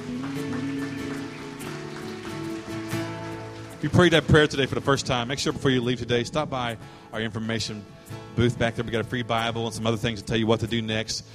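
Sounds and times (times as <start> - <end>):
audience hand clapping: 0.0 - 6.0
speech: 3.8 - 11.3.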